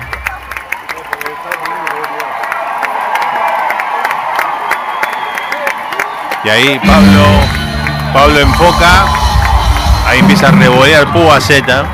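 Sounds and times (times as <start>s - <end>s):
sharp claps: 0.0s - 10.8s
large crowd shouting and cheering: 0.0s - 11.9s
whistles: 4.8s - 6.3s
speech: 6.4s - 9.2s, 10.1s - 11.9s.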